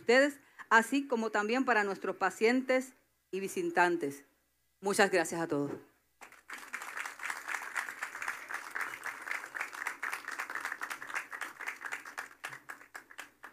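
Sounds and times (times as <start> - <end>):
speech: 0.1 - 6.3
audience applause: 6.2 - 13.5.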